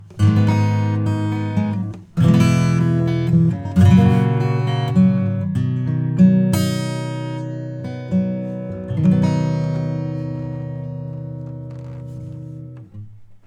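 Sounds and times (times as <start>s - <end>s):
acoustic music: 0.0s - 13.4s.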